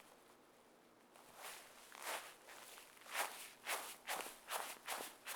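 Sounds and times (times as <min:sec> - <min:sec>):
Foley footsteps on grass: 0:01.2 - 0:05.3.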